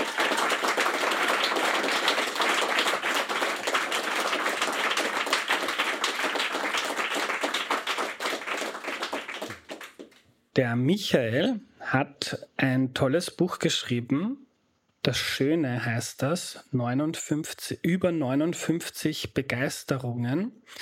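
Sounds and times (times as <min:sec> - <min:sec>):
audience applause: 0:00.0 - 0:10.2
speech: 0:10.6 - 0:14.4, 0:15.0 - 0:20.7.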